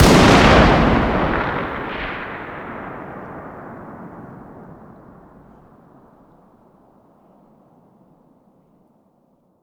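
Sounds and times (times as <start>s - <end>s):
338lm rifle fired in the distance outdoors: 0.0s - 5.9s.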